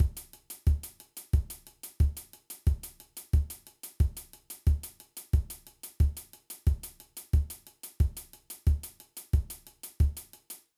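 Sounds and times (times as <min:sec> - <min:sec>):
basic drum beat: 0:00.0 - 0:10.6.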